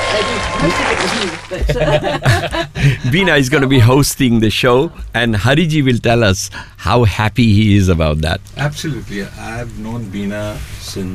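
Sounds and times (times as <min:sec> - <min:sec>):
clapping: 0:00.0 - 0:01.6
speech: 0:00.1 - 0:11.1
laughter: 0:00.4 - 0:03.5.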